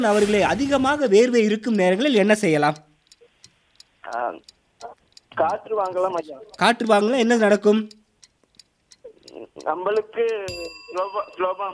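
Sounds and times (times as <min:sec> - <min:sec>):
speech: 0:00.0 - 0:02.9, 0:04.1 - 0:04.5, 0:05.4 - 0:08.0, 0:09.3 - 0:11.7
quiz bell ding: 0:10.5 - 0:11.7.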